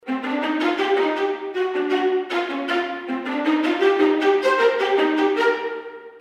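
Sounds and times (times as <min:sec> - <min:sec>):
string ensemble violas playing spiccato: 0:00.0 - 0:06.1.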